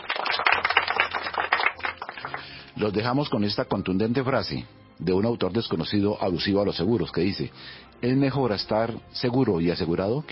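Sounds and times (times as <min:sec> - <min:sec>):
applause: 0:00.0 - 0:02.9
speech: 0:02.8 - 0:10.3.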